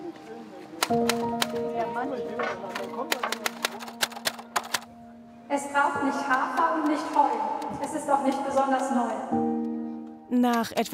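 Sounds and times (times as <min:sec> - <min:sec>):
typing on a typewriter: 0:00.8 - 0:01.7, 0:02.4 - 0:04.9, 0:06.3 - 0:08.7
speech: 0:00.9 - 0:03.5, 0:05.5 - 0:09.4, 0:10.4 - 0:10.9.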